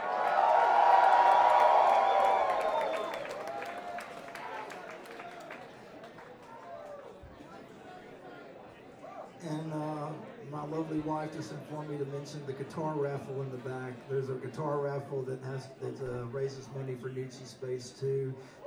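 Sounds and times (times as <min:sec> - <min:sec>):
audience clapping: 0:00.0 - 0:07.0
audience cheering and whooping: 0:00.0 - 0:07.2
speech: 0:11.0 - 0:18.6.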